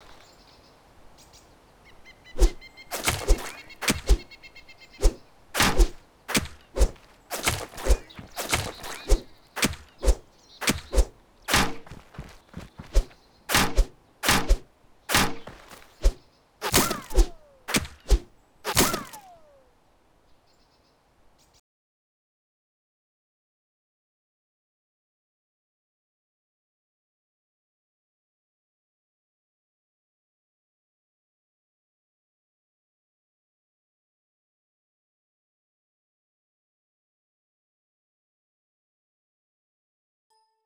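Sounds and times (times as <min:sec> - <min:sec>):
object hitting tree: 0:02.4 - 0:04.4, 0:05.0 - 0:19.4.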